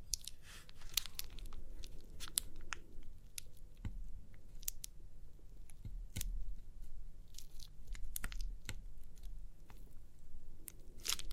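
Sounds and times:
crinkly pimple popping crackles: 0.0 - 11.3.

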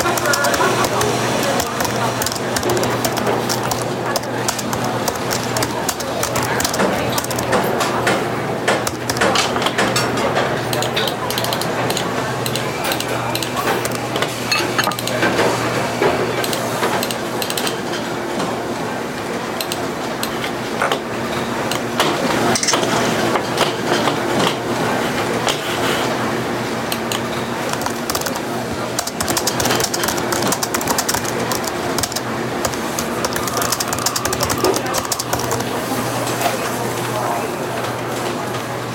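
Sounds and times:
soft chatter in a café: 0.0 - 38.9.

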